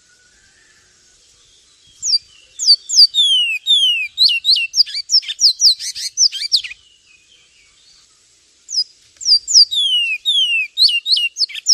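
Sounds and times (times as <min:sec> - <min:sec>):
Javan tesia piercing high chirps and falling whistles: 0:02.0 - 0:06.8, 0:08.7 - 0:11.7.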